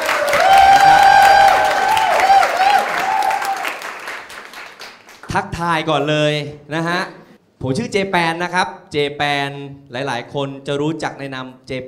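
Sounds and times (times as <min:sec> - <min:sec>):
audience applause: 0:00.0 - 0:05.3
speech: 0:05.3 - 0:11.8.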